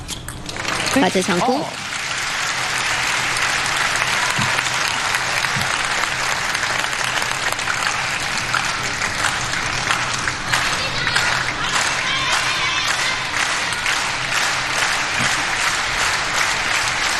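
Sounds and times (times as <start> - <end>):
dense fast-rhythm audience applause: 0.4 - 17.1
speech: 1.0 - 1.8.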